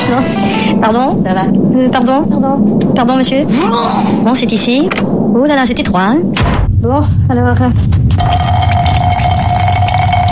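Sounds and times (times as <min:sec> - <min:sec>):
speech: 0:00.1 - 0:08.0
man urinating in a cramped airplane toilet during turbulence: 0:08.1 - 0:10.2.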